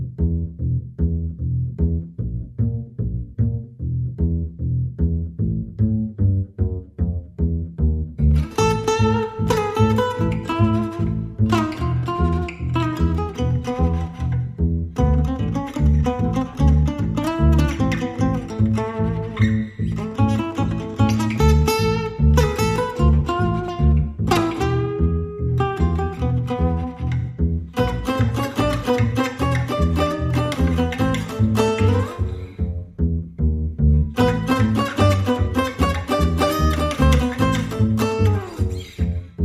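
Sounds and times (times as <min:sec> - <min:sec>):
bass guitar: 0:00.0 - 0:39.4
lead guitar: 0:08.2 - 0:39.4.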